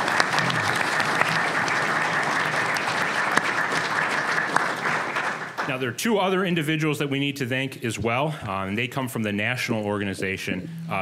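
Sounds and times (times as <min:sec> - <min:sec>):
audience applause: 0:00.0 - 0:05.8
speech: 0:05.7 - 0:10.9.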